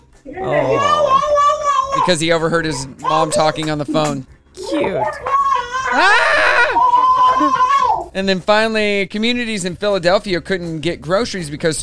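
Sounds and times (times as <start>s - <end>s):
speech: 0.2s - 1.1s, 2.0s - 6.6s, 7.4s - 11.8s
young boy screaming with delight: 0.4s - 2.1s, 4.6s - 8.1s.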